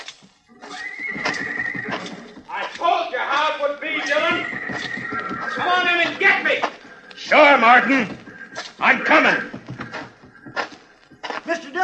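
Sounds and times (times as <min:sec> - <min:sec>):
hooves clattering: 0:00.0 - 0:11.8
horse in a corral neighing and whinnying in a radio western drama: 0:00.5 - 0:06.7
speech: 0:07.3 - 0:08.2, 0:08.8 - 0:09.6.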